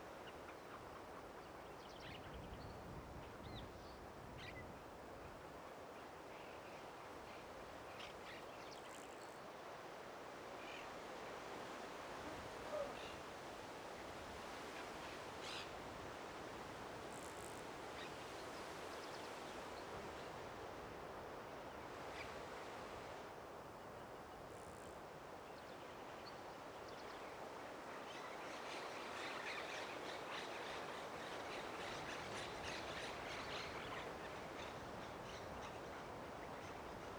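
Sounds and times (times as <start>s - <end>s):
midday outdoor ambience at a rural house in Flores Uruguay: 0.0s - 37.1s.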